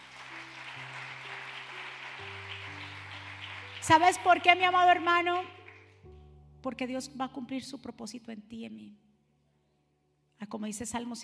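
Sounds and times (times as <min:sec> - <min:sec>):
dense crowd applause: 0:00.0 - 0:04.6
speech: 0:03.9 - 0:05.6, 0:06.6 - 0:09.1, 0:10.4 - 0:11.2.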